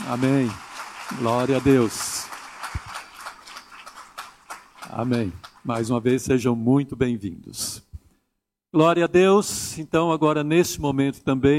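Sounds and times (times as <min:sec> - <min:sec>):
audience applauding: 0:00.0 - 0:06.1
speech: 0:00.1 - 0:02.1, 0:05.0 - 0:07.8, 0:08.7 - 0:11.5.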